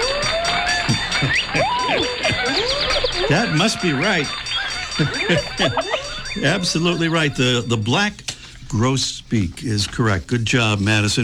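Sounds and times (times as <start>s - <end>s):
applause: 0.0s - 5.9s
laughter: 0.0s - 11.2s
speech: 0.9s - 11.2s.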